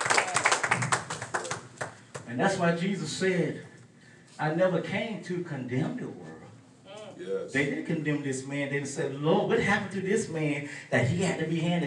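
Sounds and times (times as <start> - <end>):
audience clapping: 0.0 - 2.3
speech: 2.3 - 3.7, 4.4 - 6.3, 7.2 - 11.8.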